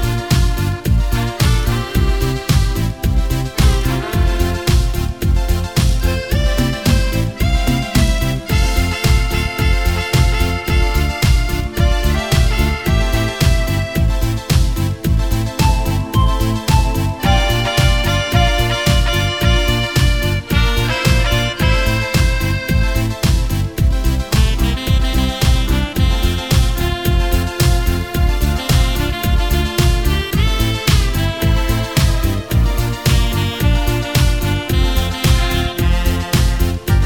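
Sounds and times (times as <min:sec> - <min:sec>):
music medley: 0:00.0 - 0:37.0.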